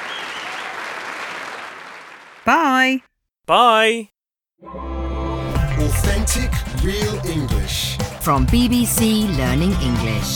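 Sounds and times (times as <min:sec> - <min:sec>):
applause: 0:00.0 - 0:02.8
speech: 0:02.4 - 0:04.8, 0:05.9 - 0:10.3.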